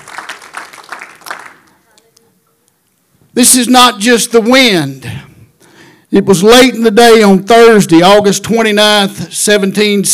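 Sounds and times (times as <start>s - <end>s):
audience clapping hands: 0.0s - 2.2s
speech: 3.4s - 5.3s, 6.1s - 10.1s.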